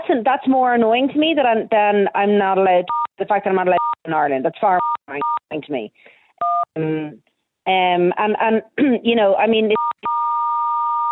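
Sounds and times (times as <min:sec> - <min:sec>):
speech: 0:00.1 - 0:10.1
telephone beeping on the line: 0:02.9 - 0:03.1, 0:03.8 - 0:04.0, 0:04.8 - 0:05.4, 0:06.4 - 0:06.7, 0:09.8 - 0:11.1.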